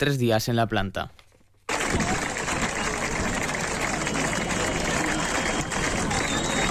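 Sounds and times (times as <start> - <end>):
speech: 0.0 - 1.2, 1.9 - 2.2
scattered voices: 1.7 - 6.6
street crowd applauding workers: 1.7 - 6.6.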